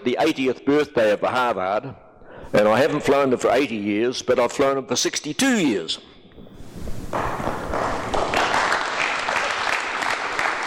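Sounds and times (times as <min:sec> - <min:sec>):
speech: 0:00.0 - 0:06.1
audience clapping: 0:07.1 - 0:10.6.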